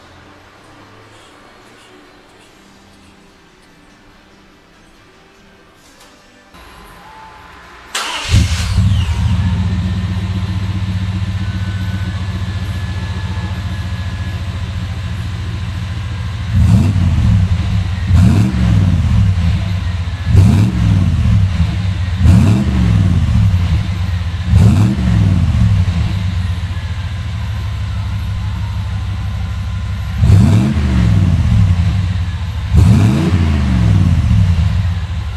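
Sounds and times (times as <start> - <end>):
suburban car muffler: 7.9 - 35.3.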